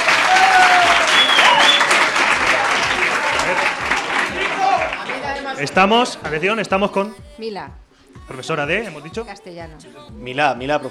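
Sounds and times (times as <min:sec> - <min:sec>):
loud audience applause: 0:00.0 - 0:05.7
speech: 0:05.7 - 0:10.8.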